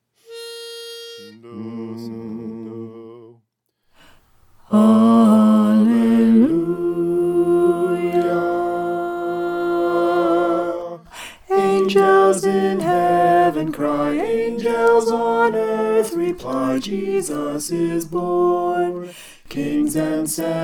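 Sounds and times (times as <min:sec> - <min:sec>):
soprano singing: 0:04.6 - 0:20.6.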